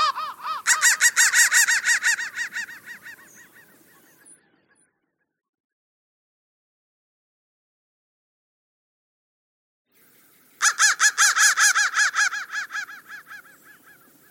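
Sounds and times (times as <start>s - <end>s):
crow cawing: 0.0s - 4.1s, 10.6s - 14.2s.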